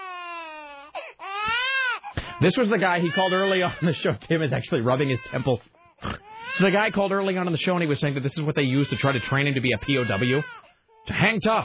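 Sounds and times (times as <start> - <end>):
baby crying: 0.0 - 4.2, 4.8 - 6.9, 8.7 - 11.6
speech: 2.4 - 11.6.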